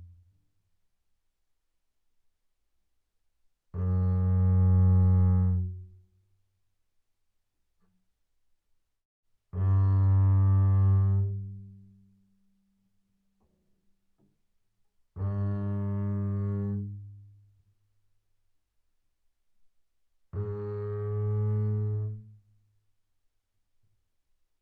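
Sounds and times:
double bass bowed on E string fortissimo: 0:03.8 - 0:05.9, 0:09.6 - 0:11.7, 0:15.2 - 0:17.2, 0:20.4 - 0:22.4.

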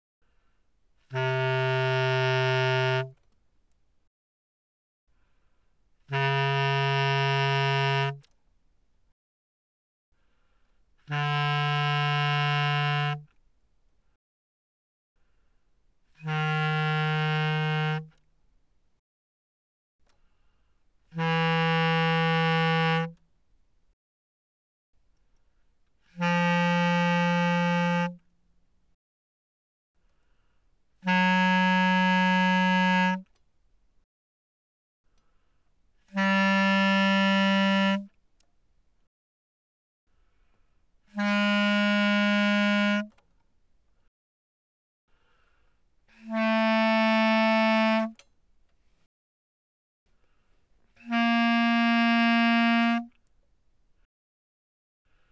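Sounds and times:
bass clarinet playing fortissimo notes C3 to B3: 0:01.1 - 0:03.2, 0:06.0 - 0:08.3, 0:11.0 - 0:13.3, 0:16.2 - 0:18.2, 0:21.1 - 0:23.2, 0:26.1 - 0:28.2, 0:31.0 - 0:33.3, 0:36.0 - 0:38.1, 0:41.1 - 0:43.1, 0:46.1 - 0:48.2, 0:51.0 - 0:53.2.

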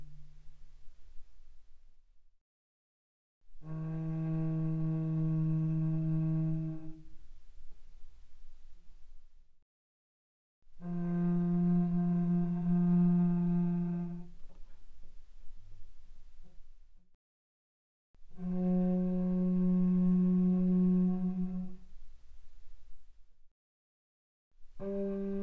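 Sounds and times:
bowed cello pianissimo on the C string: 0:00.0 - 0:01.7, 0:03.5 - 0:08.7, 0:10.8 - 0:16.8, 0:18.2 - 0:22.7, 0:24.7 - 0:25.4.

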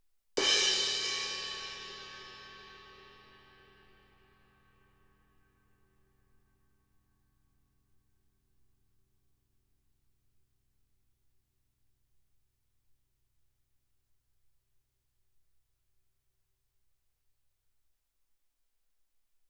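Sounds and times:
suspended cymbal crash hit with stick shoulder fortissimo: 0:00.4 - 0:03.6.

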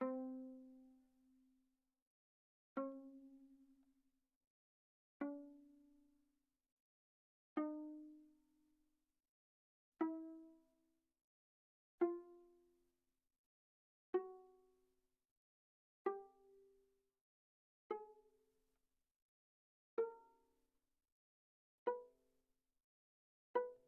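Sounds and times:
viola pizzicato on the G string mezzo-forte: 0:00.0 - 0:01.2, 0:02.8 - 0:03.6, 0:05.2 - 0:05.8, 0:07.6 - 0:08.2, 0:10.0 - 0:10.5, 0:12.0 - 0:12.7, 0:14.2 - 0:14.6, 0:16.1 - 0:16.6, 0:17.9 - 0:18.2, 0:20.0 - 0:20.3, 0:21.9 - 0:22.1, 0:23.6 - 0:23.8.

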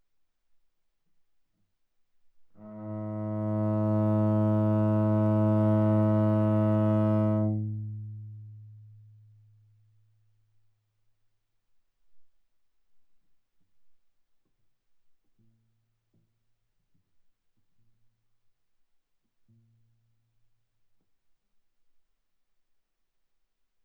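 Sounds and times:
viola bowed fortissimo on the G string: 0:02.6 - 0:07.8.

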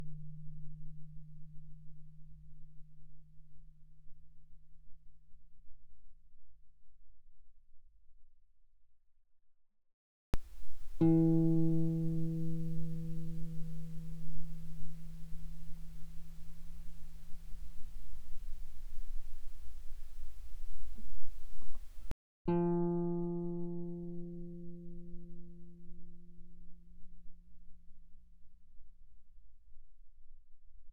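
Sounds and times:
guitar notes mezzo forte on the D string: 0:10.3 - 0:25.3.

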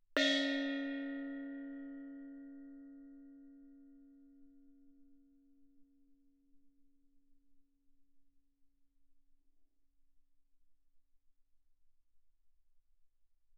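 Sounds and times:
loud Thai gong strike in D-flat 4: 0:00.2 - 0:02.6.

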